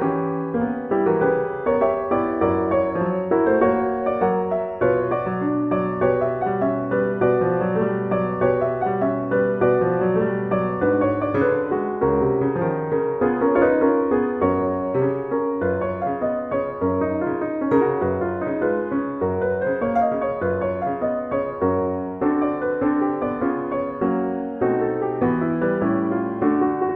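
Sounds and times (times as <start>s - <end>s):
tango piano music: 0.0s - 26.9s.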